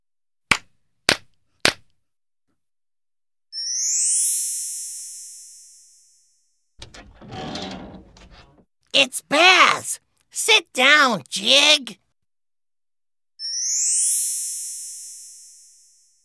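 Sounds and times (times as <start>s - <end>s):
hand claps: 0.5s - 1.9s
rustling: 6.8s - 8.6s
speech: 9.0s - 12.0s.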